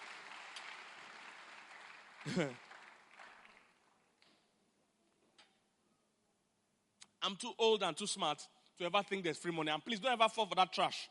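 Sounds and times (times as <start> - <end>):
audience clapping: 0.0 - 4.4
speech: 2.2 - 2.7, 7.2 - 11.0.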